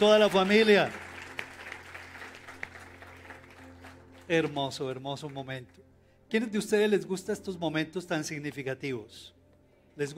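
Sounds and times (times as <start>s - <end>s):
speech: 0.0s - 1.0s, 4.3s - 9.4s, 10.0s - 10.1s
audience applause: 0.0s - 4.6s.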